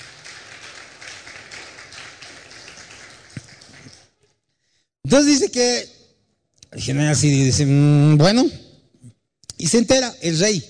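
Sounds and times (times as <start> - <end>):
audience applause: 0.0 - 4.2
speech: 5.1 - 5.9, 6.7 - 8.6, 9.6 - 10.6.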